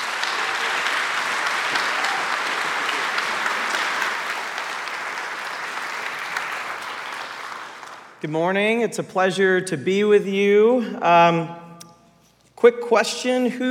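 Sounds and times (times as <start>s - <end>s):
audience applauding to welcome a speaker: 0.0s - 8.2s
speech: 8.2s - 11.6s, 12.6s - 13.7s.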